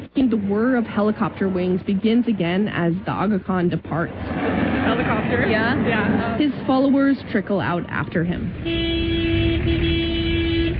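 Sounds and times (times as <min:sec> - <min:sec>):
low engine rumble of traffic: 0:00.0 - 0:10.7
speech: 0:00.2 - 0:09.9
car horn on a narrow crowded mountain road in Pakistan: 0:08.5 - 0:10.7.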